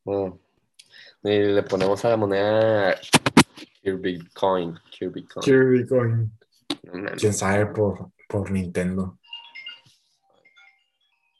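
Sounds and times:
speech: 0.1s - 0.4s, 1.0s - 9.2s
phone ringtone for an incoming call: 9.2s - 11.3s.

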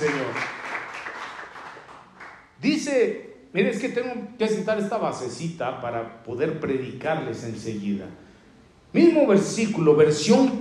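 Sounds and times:
audience applause: 0.0s - 2.5s
speech: 2.6s - 8.2s, 8.9s - 10.5s.

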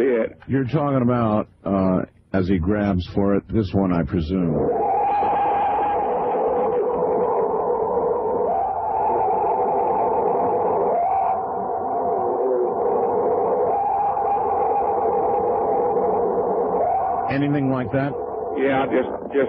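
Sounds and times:
speech: 0.0s - 4.8s, 17.4s - 19.4s
alleged Bigfoot scream: 4.5s - 19.4s.

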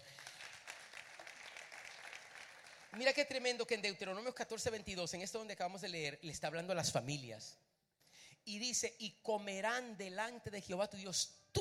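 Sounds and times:
audience applause: 0.0s - 3.2s
speech: 3.0s - 7.7s, 8.4s - 11.5s.

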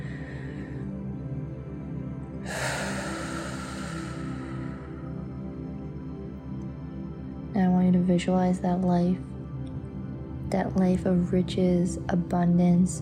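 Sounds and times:
deep breath in: 0.0s - 0.9s, 2.4s - 5.3s
steady tonal background: 0.0s - 13.0s
speech: 7.9s - 9.3s, 10.5s - 13.0s.

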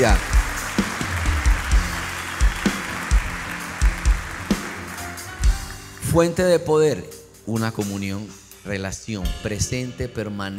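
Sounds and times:
speech: 0.0s - 0.3s, 6.2s - 10.5s
audience applauding loudly: 0.0s - 6.2s.

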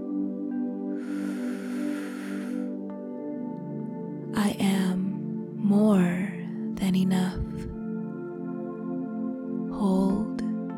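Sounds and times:
sustained gentle tonal music: 0.0s - 10.7s
slow deep inhale during a breathing exercise: 1.0s - 2.8s
speech: 6.9s - 7.7s.

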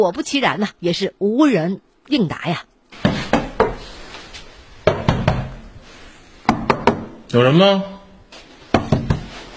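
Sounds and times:
speech: 0.0s - 2.7s, 7.3s - 8.0s
sharp knocks on a door in a hallway: 3.0s - 3.8s, 4.8s - 5.6s, 6.5s - 7.1s, 8.7s - 9.3s.

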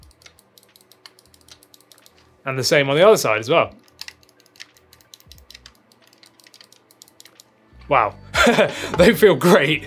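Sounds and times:
game controller trigger buttons clicking: 0.0s - 2.2s, 3.8s - 7.5s
speech: 2.4s - 3.8s, 7.9s - 9.8s
laughter: 8.4s - 9.1s.

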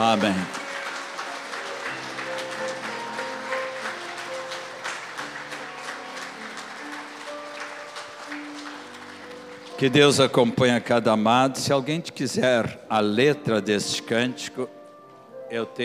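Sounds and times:
speech: 0.0s - 0.6s, 9.8s - 14.8s, 15.5s - 15.8s
audience clapping: 0.0s - 10.9s.

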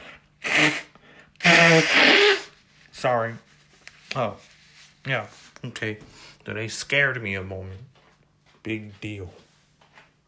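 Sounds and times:
person blowing nose: 0.0s - 2.7s
speech: 3.0s - 3.5s, 4.1s - 7.9s, 8.6s - 9.4s.

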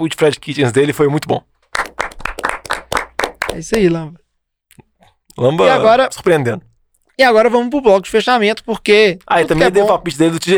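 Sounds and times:
speech: 0.0s - 1.5s, 3.5s - 4.2s, 4.8s - 10.5s
round of applause: 1.7s - 3.9s.

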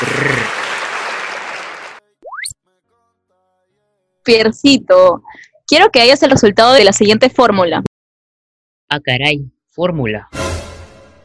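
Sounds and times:
applause with cheering: 0.0s - 2.1s
speech: 4.2s - 7.9s, 8.9s - 10.4s.

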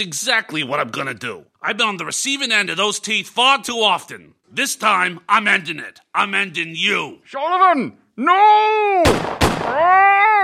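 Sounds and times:
speech: 0.0s - 10.4s
gunshots: 9.0s - 9.9s
high-pitched wailing cry: 9.7s - 10.4s.

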